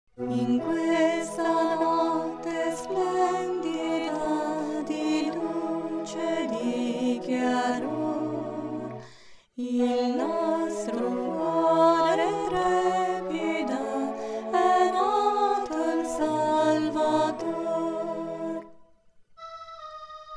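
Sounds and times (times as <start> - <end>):
contralto voices: 0.2 - 18.8.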